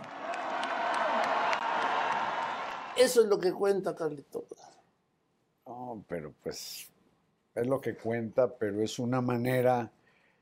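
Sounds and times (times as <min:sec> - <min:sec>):
applause: 0:00.0 - 0:03.2
speech: 0:03.0 - 0:04.7, 0:05.9 - 0:06.9, 0:07.6 - 0:10.0.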